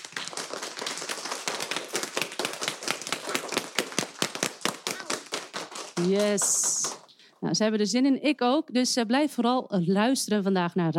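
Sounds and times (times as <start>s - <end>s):
applause for students: 0.0s - 7.1s
speech: 6.0s - 10.9s.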